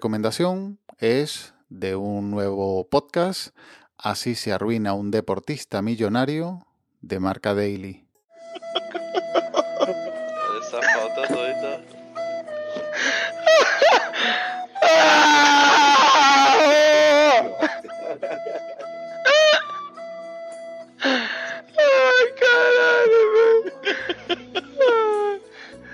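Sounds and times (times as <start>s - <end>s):
speech: 0.0s - 8.0s
man crying: 8.5s - 11.4s, 13.0s - 19.9s, 21.0s - 25.5s
man laughing: 8.5s - 11.4s, 13.1s - 14.2s, 16.5s - 19.7s, 23.5s - 25.4s.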